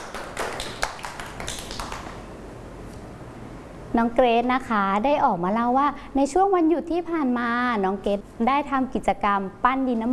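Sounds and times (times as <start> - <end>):
children clapping: 0.0 - 2.2
speech: 4.0 - 10.1.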